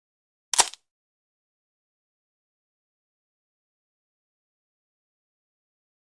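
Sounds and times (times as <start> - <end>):
bone breaking: 0.6 - 0.8.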